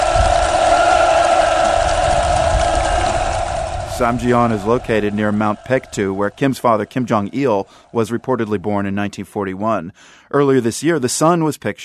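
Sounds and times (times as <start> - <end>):
large crowd roaring and cheering: 0.0 - 8.9
speech: 4.0 - 11.8.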